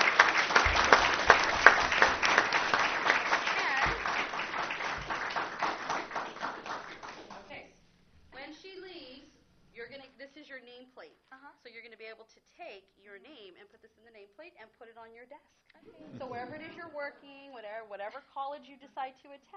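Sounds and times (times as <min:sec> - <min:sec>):
audience applause: 0:00.0 - 0:07.5.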